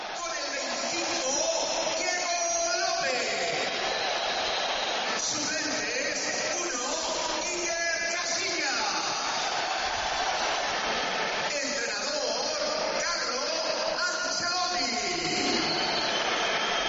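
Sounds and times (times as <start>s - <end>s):
stadium crowd roaring: 0.0s - 2.4s, 3.0s - 7.6s, 8.4s - 13.8s, 15.0s - 16.8s
stadium crowd clapping: 0.0s - 16.8s
stadium crowd whistling: 2.2s - 5.8s, 15.0s - 16.8s.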